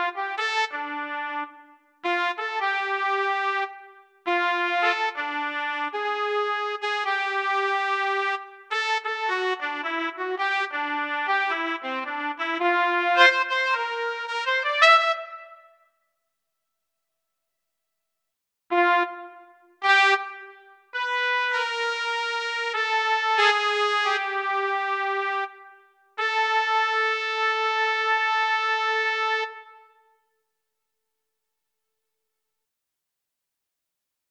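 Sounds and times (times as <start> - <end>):
trumpet: 0.0 - 16.0, 18.7 - 30.2.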